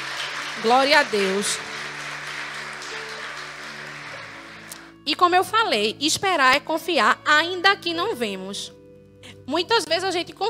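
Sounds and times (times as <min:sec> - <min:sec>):
audience applauding: 0:00.0 - 0:04.9
speech: 0:00.6 - 0:01.7, 0:05.1 - 0:08.8, 0:09.5 - 0:10.4.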